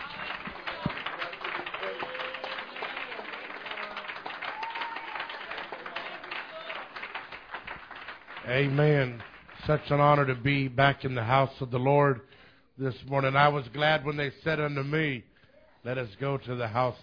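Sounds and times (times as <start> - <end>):
audience clapping hands in praise: 0.0 - 10.4
speech: 8.5 - 17.0.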